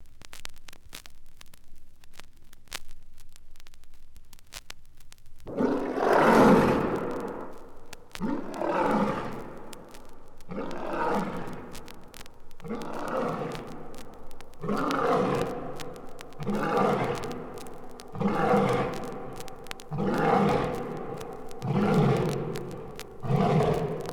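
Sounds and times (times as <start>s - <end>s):
lion roaring: 5.5s - 7.6s, 8.2s - 9.9s, 10.5s - 24.1s.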